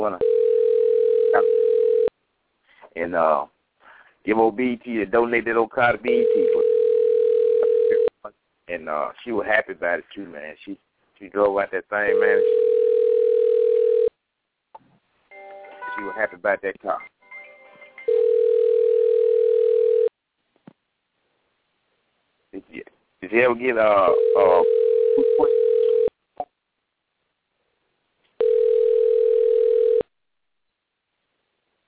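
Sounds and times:
speech: 0.0 - 0.3, 3.0 - 3.6, 4.2 - 6.6, 8.7 - 12.6, 16.0 - 17.1, 22.5 - 24.7
phone line ringback tones: 0.2 - 2.1, 6.1 - 8.1, 12.1 - 14.1, 18.0 - 20.1, 24.1 - 26.1, 28.4 - 30.1.

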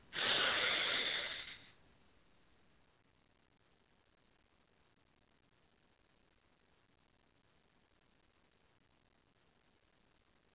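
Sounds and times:
long airy exhale during a guided group breathing exercise: 0.1 - 1.7.

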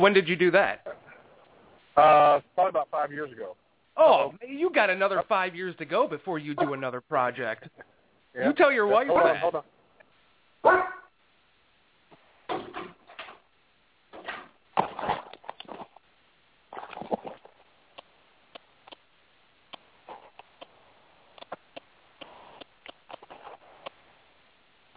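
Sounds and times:
speech: 0.0 - 0.9, 2.0 - 9.8, 10.6 - 11.0
dog barking: 10.6 - 11.1
sharp clicks and taps: 18.0 - 19.1, 19.7 - 24.0.

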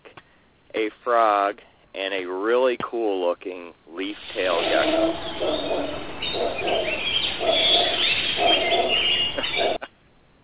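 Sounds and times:
speech: 0.8 - 8.0
high bird chirps and trills in a jungle: 4.2 - 9.8
low hooting and cooing bird calls in a jungle: 4.3 - 9.9.

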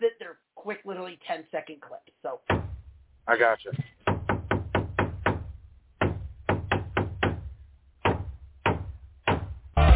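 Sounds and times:
speech: 0.7 - 3.9
hammer strikes: 2.5 - 2.8, 3.7 - 9.9.

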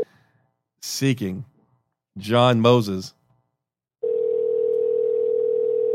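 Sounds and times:
speech: 0.9 - 1.5, 2.2 - 3.2
old-style telephone ringing tone: 4.0 - 5.9.

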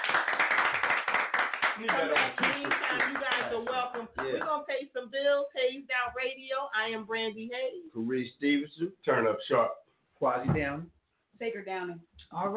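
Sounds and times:
studio audience clapping for a guest on a radio show: 0.0 - 4.6
speech: 1.8 - 12.5.

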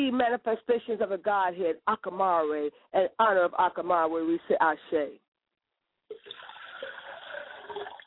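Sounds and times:
speech: 0.0 - 5.2
liquid poured as a libation, splashing: 6.1 - 8.0.

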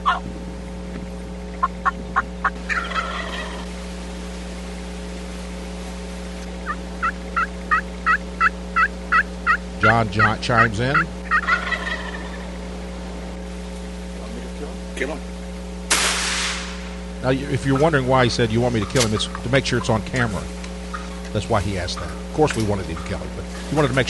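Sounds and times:
wild turkey gobblers gobbling: 0.0 - 0.3, 1.5 - 3.8, 6.6 - 12.8, 17.2 - 24.0
speech: 0.1 - 0.4, 9.9 - 11.2, 15.0 - 15.3, 17.2 - 20.6, 21.3 - 24.0.

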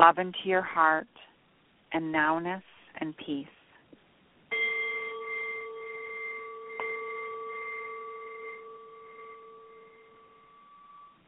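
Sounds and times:
speech: 0.0 - 1.3, 1.9 - 3.6
bell ringing: 4.5 - 11.2.

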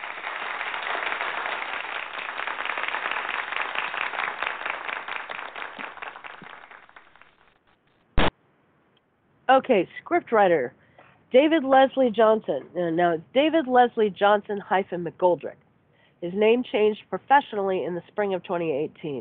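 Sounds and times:
audience applause: 0.0 - 7.5
speech: 9.6 - 15.6, 16.2 - 19.1.

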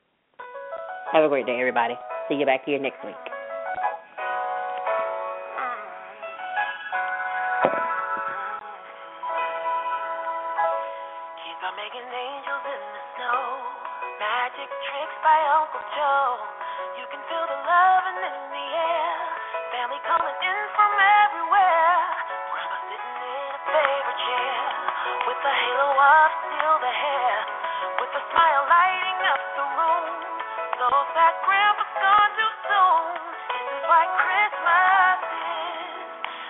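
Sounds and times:
song recording: 0.3 - 36.4
speech: 1.1 - 3.4
sung vocal lines: 11.3 - 36.4.

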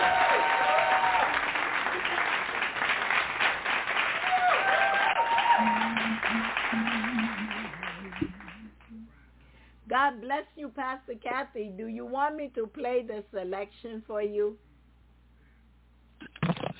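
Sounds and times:
audience hand clapping applause: 0.0 - 8.9
speech: 10.2 - 14.7.

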